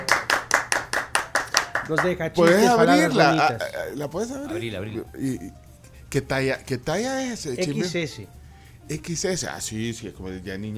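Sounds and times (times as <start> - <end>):
audience clapping: 0.0 - 3.1
speech: 1.9 - 10.7.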